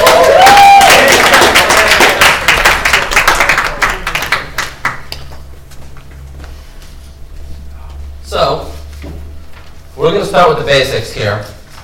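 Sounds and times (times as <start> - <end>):
crowd clapping: 0.0 - 5.5
speech: 10.3 - 11.5.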